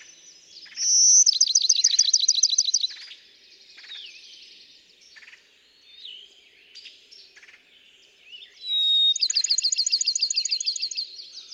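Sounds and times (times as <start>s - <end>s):
Bachman's sparrow singing a whistle and trill: 0.6s - 3.1s, 8.6s - 11.1s
chorus of quieter chirping birds: 0.8s - 3.0s, 8.7s - 11.0s.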